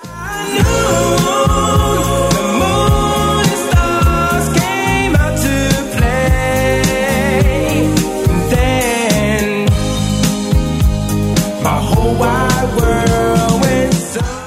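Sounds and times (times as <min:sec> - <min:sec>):
80s Redrum drum beat: 0:00.6 - 0:14.4.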